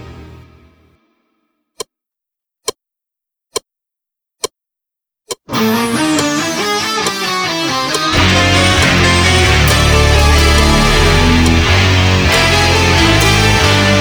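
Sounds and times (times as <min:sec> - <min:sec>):
slow music loop without drums: 0:05.5 - 0:14.0.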